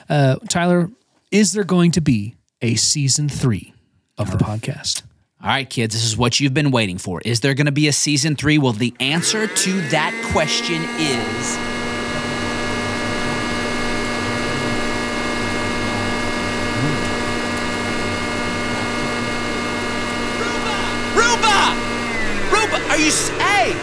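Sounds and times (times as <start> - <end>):
speech: 0.1 - 11.8
vacuum cleaner running: 9.0 - 23.8.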